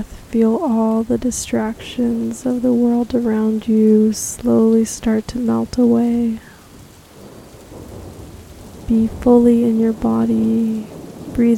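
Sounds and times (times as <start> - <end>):
speech: 0.0 - 6.5, 8.9 - 11.5
rainstorm: 0.0 - 11.5
thunder: 6.8 - 11.5.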